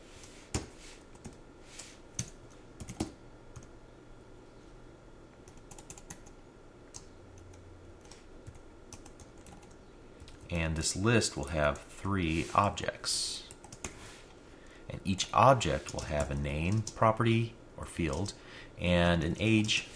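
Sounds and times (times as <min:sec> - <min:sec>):
computer keyboard typing: 0:02.2 - 0:03.7, 0:05.4 - 0:10.4, 0:13.4 - 0:14.0, 0:15.7 - 0:17.0
speech: 0:10.5 - 0:13.4, 0:15.1 - 0:19.9.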